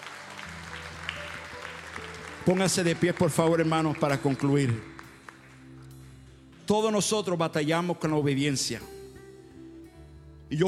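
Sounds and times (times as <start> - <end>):
audience applauding: 0.0 - 6.7
speech: 2.4 - 4.9, 6.7 - 9.0, 10.5 - 10.6.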